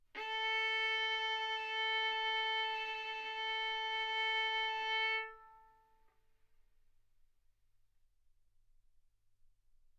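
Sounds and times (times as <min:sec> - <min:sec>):
violin arco on A string: 0:00.1 - 0:06.0.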